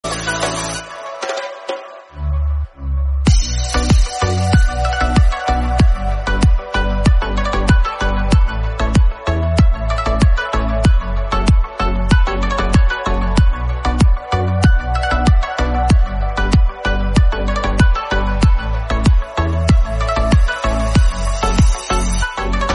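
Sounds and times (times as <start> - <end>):
background music: 0.0 - 22.7.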